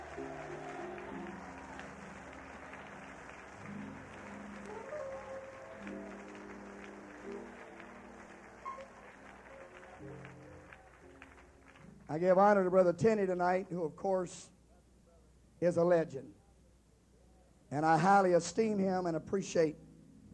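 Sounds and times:
audience clapping hands: 0.0s - 12.7s
speech: 12.1s - 14.5s, 15.6s - 16.4s, 17.7s - 19.8s.

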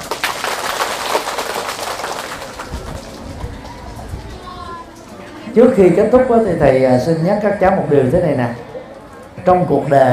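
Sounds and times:
audience applause: 0.0s - 4.8s
speech: 5.6s - 8.6s, 9.4s - 10.1s.

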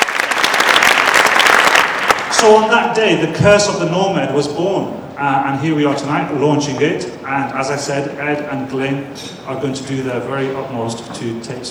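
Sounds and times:
applause: 0.0s - 2.4s
speech: 2.4s - 11.6s.

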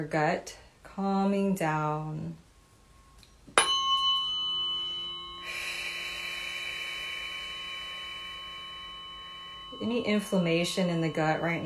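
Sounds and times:
speech: 0.0s - 2.4s, 9.8s - 11.6s
tuning fork struck and ringing: 2.5s - 11.6s.

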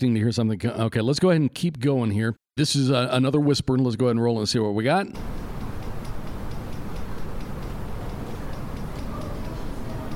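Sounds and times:
speech: 0.0s - 5.4s
fan ticking: 5.2s - 10.1s.

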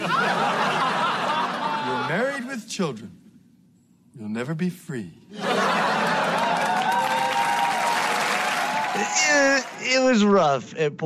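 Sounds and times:
laughter: 0.0s - 2.5s, 5.3s - 7.7s
speech: 2.1s - 3.2s, 4.2s - 5.8s, 9.0s - 11.0s
audience cheering and applauding: 5.4s - 10.3s.

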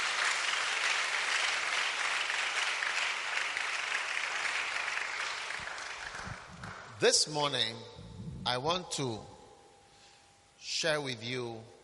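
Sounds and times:
audience clapping: 0.0s - 7.0s
speech: 7.0s - 9.3s, 10.6s - 11.8s.

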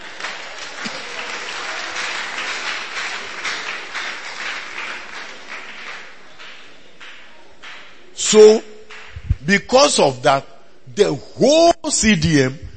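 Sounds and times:
audience clapping: 0.0s - 8.2s, 8.8s - 9.3s
speech: 8.3s - 8.7s, 9.5s - 12.7s.

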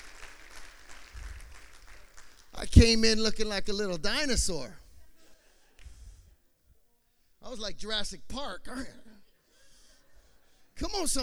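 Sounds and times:
audience clapping: 0.0s - 3.0s
speech: 2.7s - 4.8s, 7.6s - 9.0s, 10.8s - 11.2s.

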